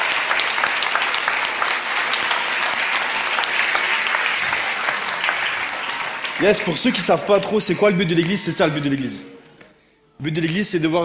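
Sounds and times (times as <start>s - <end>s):
audience applause: 0.0s - 8.0s
speech: 6.4s - 9.5s, 10.2s - 11.0s.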